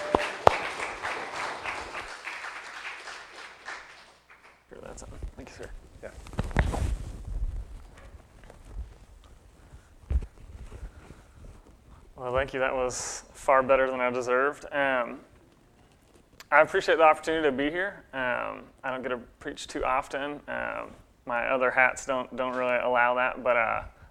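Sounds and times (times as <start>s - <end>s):
crowd applause: 0.0s - 4.7s
shuffling: 3.4s - 17.4s
speech: 12.2s - 15.3s, 16.5s - 23.9s.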